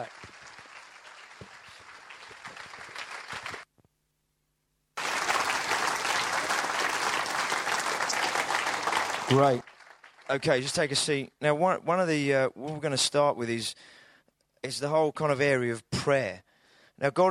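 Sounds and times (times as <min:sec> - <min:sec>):
audience clapping: 0:00.0 - 0:03.7, 0:05.0 - 0:10.8
speech: 0:09.3 - 0:09.6, 0:10.3 - 0:14.0, 0:14.6 - 0:17.2.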